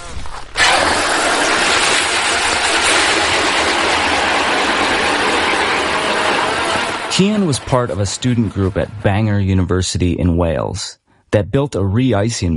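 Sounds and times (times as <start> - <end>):
drilling a 10-inch auger hole in ice: 0.0 - 8.9
speech: 7.2 - 12.5.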